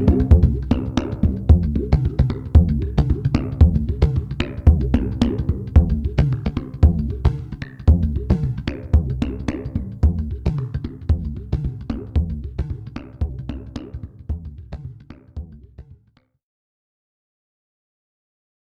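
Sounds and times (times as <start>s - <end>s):
electronic hand drum: 0.0s - 16.0s.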